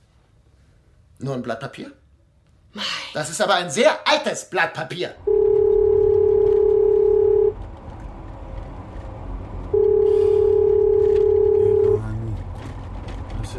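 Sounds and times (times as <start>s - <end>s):
speech: 1.2s - 2.0s, 2.7s - 5.3s
low rumble: 5.2s - 13.5s
phone ringback tone beeps: 5.3s - 7.6s, 9.8s - 12.0s.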